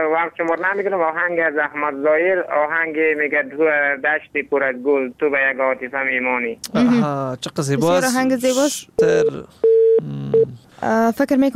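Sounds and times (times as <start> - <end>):
speech: 0.0 - 10.2, 10.8 - 11.5
telephone tone on a call cut off when calling credit ran out: 9.6 - 10.5.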